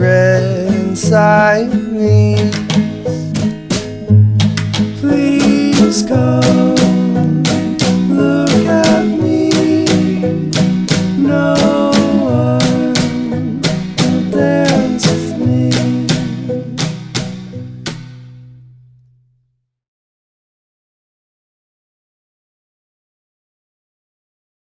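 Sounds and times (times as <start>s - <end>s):
waltz music: 0.1s - 18.5s.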